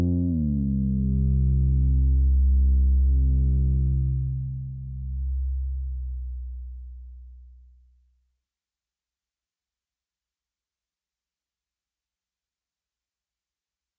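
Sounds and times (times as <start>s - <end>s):
bass build-up: 0.0s - 7.8s.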